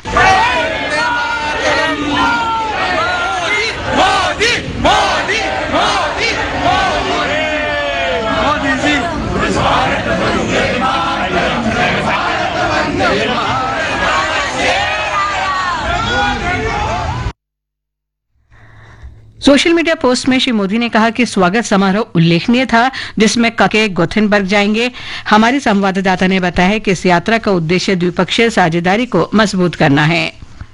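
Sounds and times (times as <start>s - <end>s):
crowd chanting slogans: 0.0s - 17.3s
speech: 19.5s - 30.4s.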